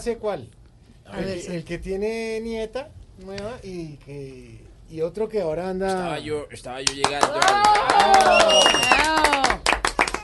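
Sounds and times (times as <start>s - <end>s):
speech: 0.0s - 9.6s
dense applause of many hands clapping: 6.8s - 10.2s
loud cheering and whooping voices: 7.4s - 9.6s.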